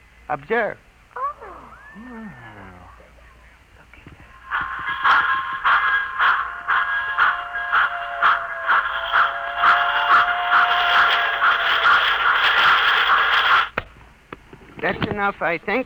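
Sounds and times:
speech: 0:00.3 - 0:00.9, 0:02.0 - 0:02.6, 0:15.2 - 0:15.8
rapid regular clicking of toy model train: 0:03.9 - 0:15.8
faint sliding whistle-like tones: 0:04.0 - 0:14.0
toy model train motor whirring: 0:04.0 - 0:14.0.

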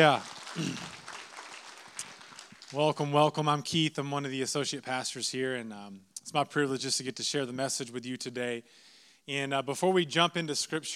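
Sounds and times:
speech: 0:00.0 - 0:01.0, 0:02.7 - 0:10.9
audience hand clapping: 0:00.0 - 0:03.2.

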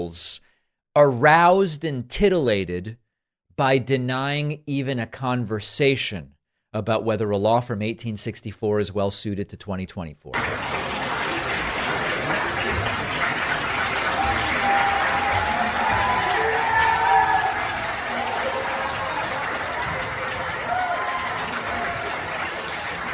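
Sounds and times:
speech: 0:00.0 - 0:00.4, 0:01.0 - 0:03.0, 0:03.6 - 0:11.0
lawmakers applauding in a chamber: 0:10.3 - 0:23.1
lawmakers cheering in a chamber: 0:10.4 - 0:23.1.

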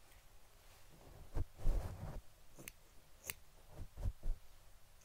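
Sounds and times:
brushing on a fluffy microphone: 0:00.6 - 0:02.3, 0:03.6 - 0:04.4.

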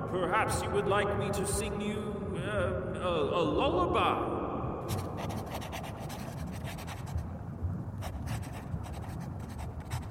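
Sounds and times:
speech: 0:00.1 - 0:05.0
pen scratching as a poem is written by hand: 0:04.9 - 0:07.2, 0:08.0 - 0:10.1.

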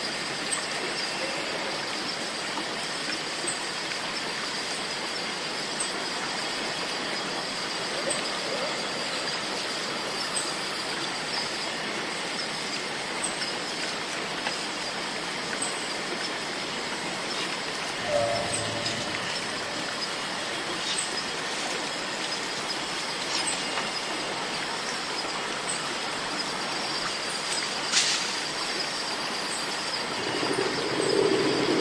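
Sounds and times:
cicadas droning in a rainforest: 0:00.0 - 0:31.8
sharp chirp: 0:18.0 - 0:20.3.

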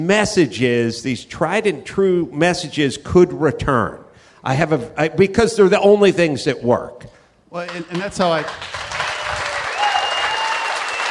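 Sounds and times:
speech: 0:00.0 - 0:08.8
audience applause: 0:07.7 - 0:11.1.

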